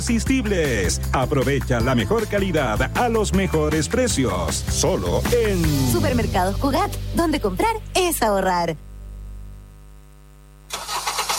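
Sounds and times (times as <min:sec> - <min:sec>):
speech: 0:00.0 - 0:08.9
car engine starting: 0:10.7 - 0:11.3.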